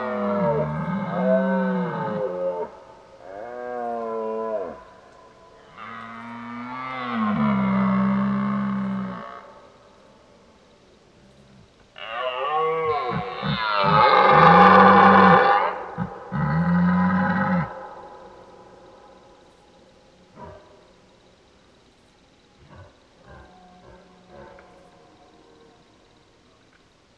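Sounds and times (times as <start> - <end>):
red deer stag bellowing: 0.0 - 5.0, 5.6 - 9.6, 12.0 - 18.5.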